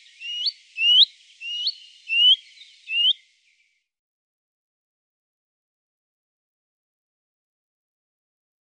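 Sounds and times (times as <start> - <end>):
Willow warbler song, soft falling whistled cadence: 0.0 - 3.8.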